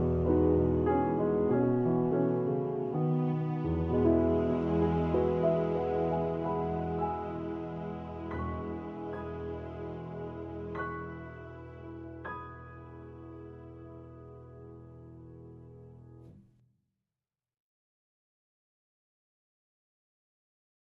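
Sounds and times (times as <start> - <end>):
strings playing: 0.0 - 14.0.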